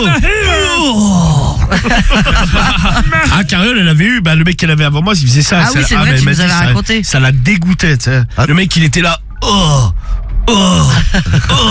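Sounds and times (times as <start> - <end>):
speech: 0.0 - 0.3, 1.8 - 9.9, 10.5 - 11.6
person imitating a weightlifter's strained grunting moan: 0.0 - 1.9, 9.4 - 11.6
laughter: 1.6 - 3.6, 10.9 - 11.6.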